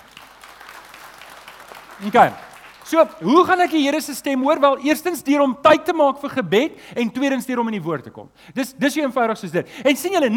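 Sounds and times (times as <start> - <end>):
audience applause: 0.0 - 3.4
speech: 2.0 - 10.3.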